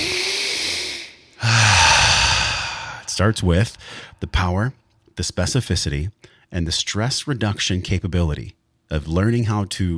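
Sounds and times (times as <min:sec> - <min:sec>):
deep belly breaths: 0:00.0 - 0:04.2
speech: 0:03.2 - 0:09.9.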